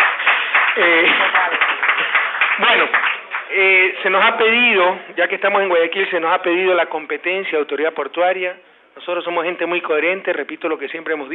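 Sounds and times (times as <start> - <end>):
scattered clapping from a handful of people: 0.0 - 3.7
speech: 0.8 - 1.8, 2.6 - 11.3.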